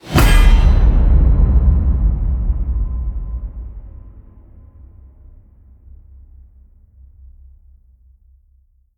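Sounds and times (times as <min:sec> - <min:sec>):
massive cinematic hits: 0:00.0 - 0:06.6.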